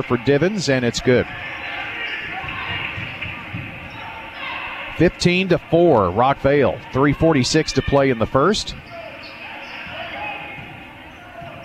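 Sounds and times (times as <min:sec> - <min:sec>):
speech: 0:00.0 - 0:01.7, 0:05.0 - 0:08.9
noise: 0:00.0 - 0:11.6
basketball dribbled on a court during a game: 0:00.9 - 0:05.4, 0:09.8 - 0:11.6.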